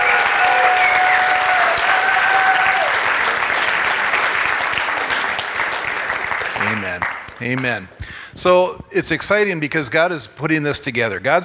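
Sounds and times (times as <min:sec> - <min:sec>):
faint cheers and whistles: 0:00.0 - 0:03.0
audience applause: 0:00.0 - 0:08.0
speech: 0:07.4 - 0:11.4.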